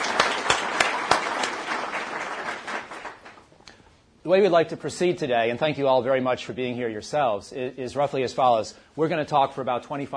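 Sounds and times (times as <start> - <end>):
audience applause at a Brookings event welcoming General Allen: 0.0 - 3.5
speech: 4.2 - 10.1.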